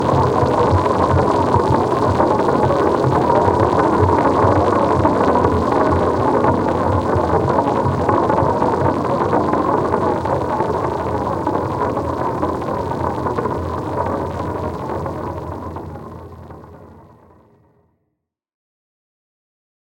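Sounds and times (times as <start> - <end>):
space drone: 0.0 - 17.6.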